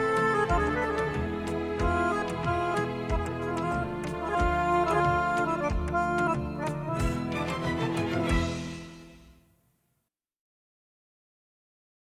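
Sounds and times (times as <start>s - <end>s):
instrumental music: 0.0s - 9.6s.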